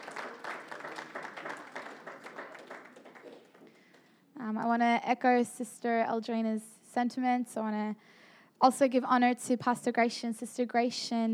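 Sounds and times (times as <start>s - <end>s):
audience clapping hands: 0.0s - 4.1s
speech: 4.5s - 11.3s.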